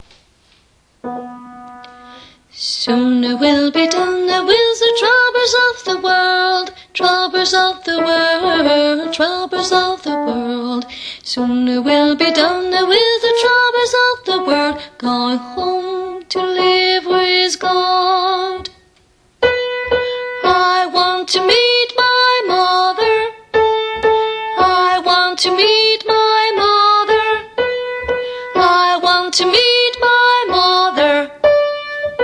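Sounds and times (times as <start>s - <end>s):
soprano singing: 1.8s - 18.8s, 19.9s - 32.2s.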